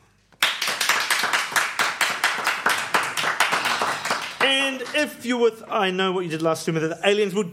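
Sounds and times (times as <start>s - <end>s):
audience clapping in unison: 0.3s - 5.2s
speech: 4.8s - 7.5s.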